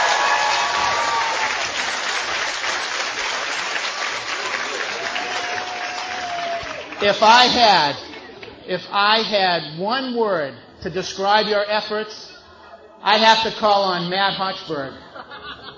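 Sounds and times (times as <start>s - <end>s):
loud whooping cheer: 0.0s - 2.0s, 4.1s - 7.0s
crowd applauding: 0.0s - 8.4s
speech: 7.0s - 8.0s, 8.7s - 12.3s, 13.0s - 15.0s
laughter: 15.0s - 15.7s.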